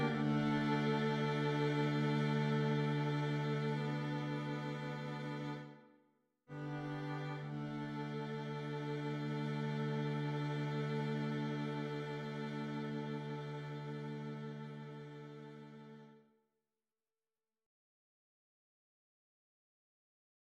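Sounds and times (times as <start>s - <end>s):
string ensemble: 0.0s - 5.8s, 6.5s - 16.1s.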